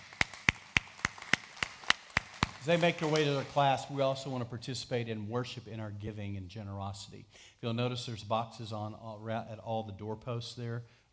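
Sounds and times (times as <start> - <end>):
audience clapping: 0.0 - 3.9
speech: 2.6 - 11.0.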